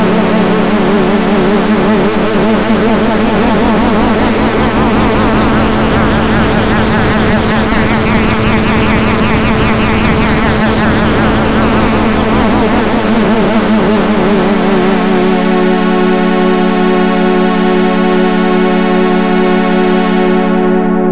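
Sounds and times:
Polymode arpeggiator synthesizer with X Mod: 0:00.0 - 0:21.0.

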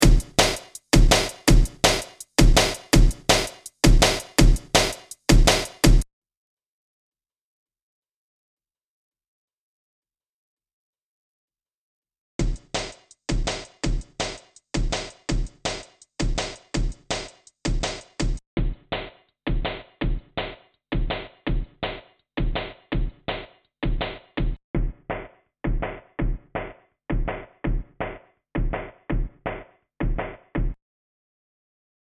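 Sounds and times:
drums: 0:00.0 - 0:06.1, 0:12.4 - 0:30.8.

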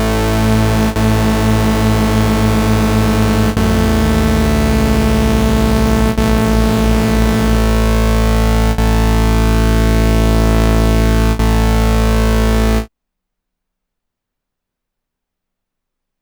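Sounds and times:
Korg Volca Bass three-voice detuned synth bass: 0:00.0 - 0:12.9.

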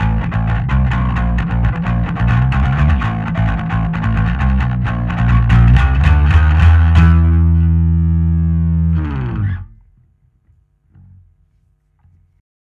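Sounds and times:
picked bass: 0:00.0 - 0:10.0.

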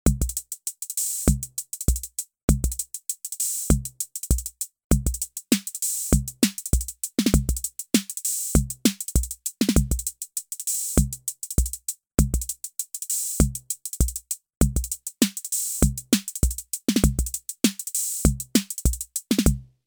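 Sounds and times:
music beat: 0:00.1 - 0:19.6.

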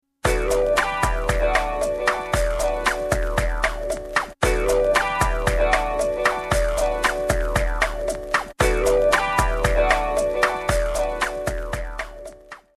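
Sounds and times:
groovy strings: 0:00.3 - 0:12.4.

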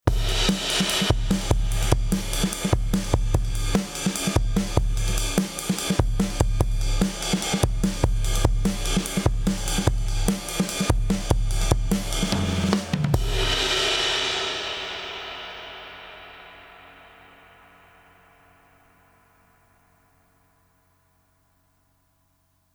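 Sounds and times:
compressed drum bus effect: 0:00.0 - 0:14.7.

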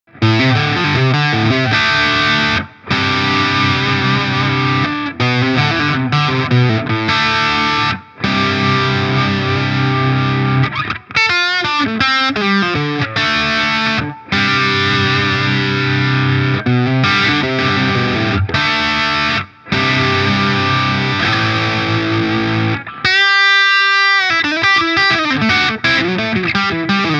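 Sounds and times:
Harley Benton kit electric guitar distorted: 0:00.1 - 0:27.1.

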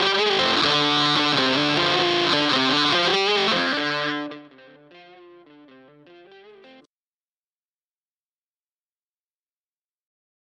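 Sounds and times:
overdrive distortion: 0:00.0 - 0:06.8.

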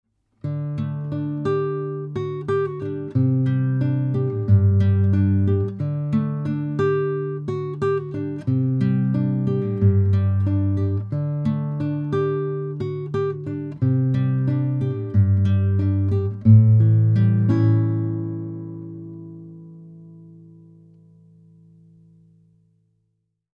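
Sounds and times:
classical guitar through SPL Channel One MKIII: 0:00.3 - 0:22.7.

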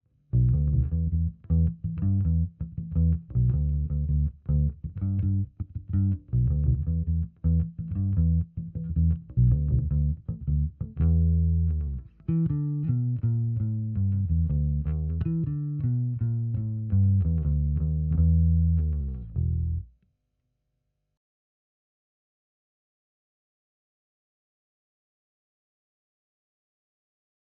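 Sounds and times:
SVT410E bass amplifier through SM57 microphone: 0:00.2 - 0:20.0.

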